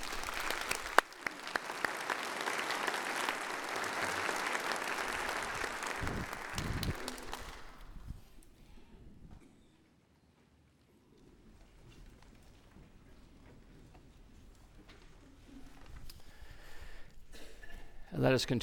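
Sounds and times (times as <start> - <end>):
audience applause: 0.0 - 8.1.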